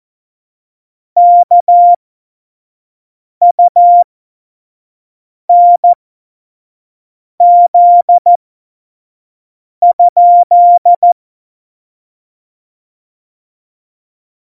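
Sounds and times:
CW Morse code at tempo 70: 1.2s - 2.0s, 3.5s - 4.0s, 5.5s - 6.0s, 7.4s - 8.4s, 9.8s - 11.2s.

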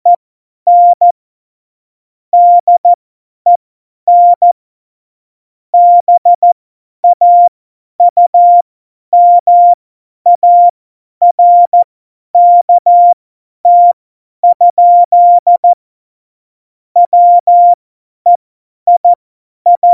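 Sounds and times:
CW Morse code at tempo 70: 0.1s - 1.0s, 2.4s - 2.9s, 3.5s - 4.6s, 5.8s - 8.6s, 9.2s - 15.8s, 17.0s - 19.9s.

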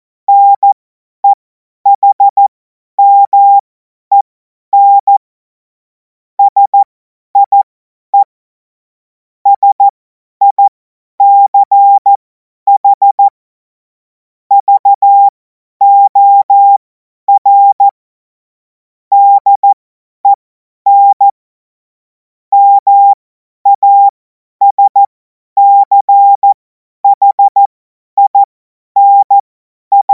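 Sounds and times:
CW Morse code beeps: 0.3s - 4.2s, 4.8s - 5.2s, 6.4s - 8.3s, 9.5s - 13.3s, 14.5s - 18.0s, 19.1s - 21.4s, 22.5s - 30.1s.

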